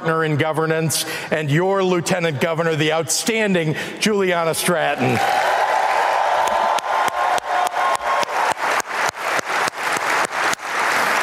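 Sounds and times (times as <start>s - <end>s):
speech: 0.0s - 5.6s
audience applause: 5.0s - 11.2s.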